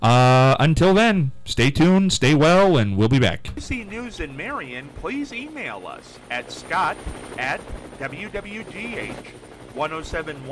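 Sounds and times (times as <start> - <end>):
speech: 0.0 - 10.5
news helicopter rotor chopping as radio effect: 3.4 - 10.5.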